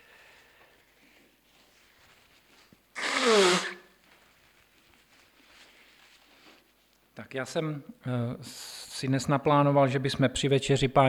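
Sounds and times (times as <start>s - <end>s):
person blowing nose: 3.0s - 4.0s
speech: 7.3s - 11.0s.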